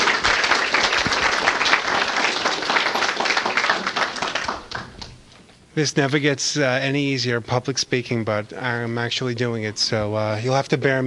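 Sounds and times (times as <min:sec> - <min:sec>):
audience applause: 0:00.0 - 0:05.2
speech: 0:05.8 - 0:11.0.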